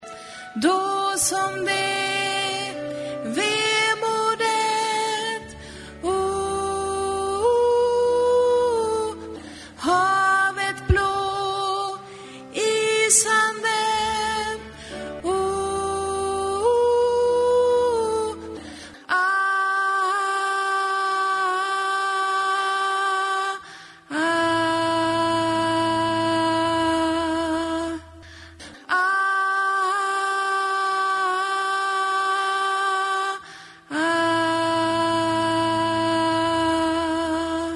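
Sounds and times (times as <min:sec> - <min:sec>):
soprano voice: 0:00.1 - 0:37.7.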